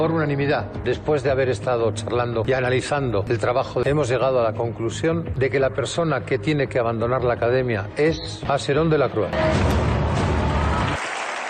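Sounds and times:
speech: 0.0s - 9.9s
audience applause: 9.9s - 11.4s.

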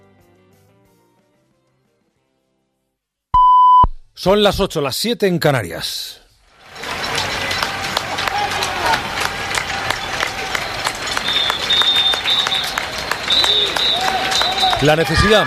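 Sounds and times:
speech: 4.2s - 6.2s, 14.8s - 15.4s
applause for health workers: 6.6s - 15.4s.

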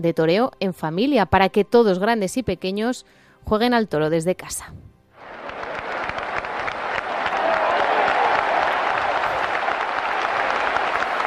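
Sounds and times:
speech: 0.0s - 4.8s
sustained applause from many hands: 5.2s - 11.2s.

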